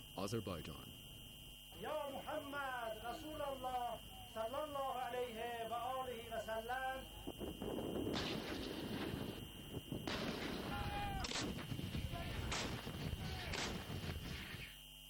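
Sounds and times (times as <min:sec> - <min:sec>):
speech: 0:00.2 - 0:01.0, 0:01.8 - 0:08.8
artillery fire during military drill: 0:07.4 - 0:14.7.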